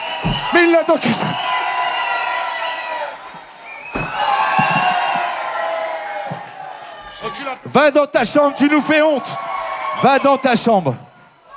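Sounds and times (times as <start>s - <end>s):
crowd cheering and whooping loudly: 0.0s - 11.5s
speech: 0.2s - 1.6s, 7.4s - 11.0s.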